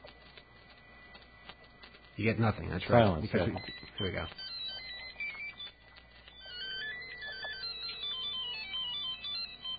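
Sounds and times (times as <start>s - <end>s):
speech: 2.2s - 4.5s
new mobile phone ringtone: 3.4s - 9.7s.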